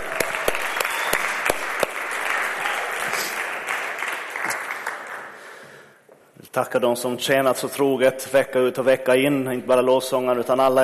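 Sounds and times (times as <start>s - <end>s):
audience applauding: 0.0s - 5.6s
speech: 6.6s - 10.8s.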